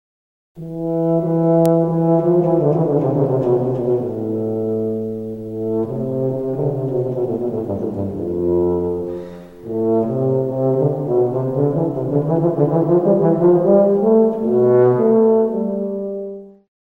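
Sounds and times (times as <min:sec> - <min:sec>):
tuba: 0:00.6 - 0:16.7.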